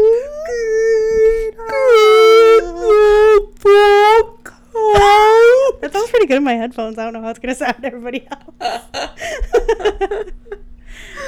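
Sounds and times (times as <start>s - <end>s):
person imitating a whale call: 0.0s - 5.8s
speech: 6.3s - 10.4s
laughter: 7.8s - 10.6s.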